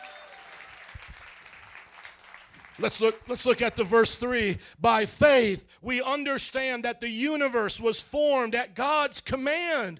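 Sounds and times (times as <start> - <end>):
audience clapping: 0.0 - 3.9
speech: 2.8 - 9.9.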